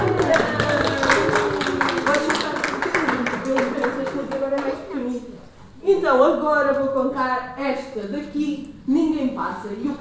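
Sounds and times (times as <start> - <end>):
audience clapping: 0.0 - 4.9
speech: 6.2 - 9.9.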